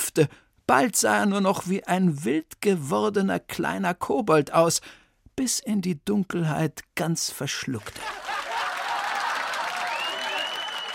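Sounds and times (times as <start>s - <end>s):
speech: 0.2s - 8.4s
audience clapping: 7.8s - 10.9s
audience laughing: 7.9s - 10.0s.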